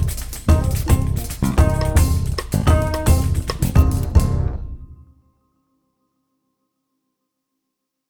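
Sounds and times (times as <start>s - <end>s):
pandeiro: 0.0s - 5.0s.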